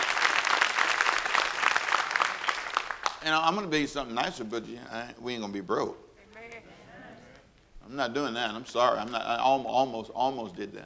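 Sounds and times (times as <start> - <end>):
audience hand clapping: 0.0 - 3.5
speech: 3.2 - 6.0, 7.9 - 10.8.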